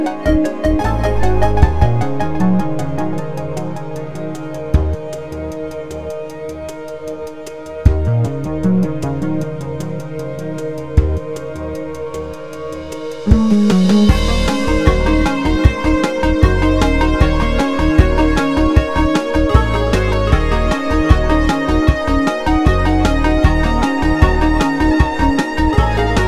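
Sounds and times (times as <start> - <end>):
synthesizer: 0.0 - 26.2.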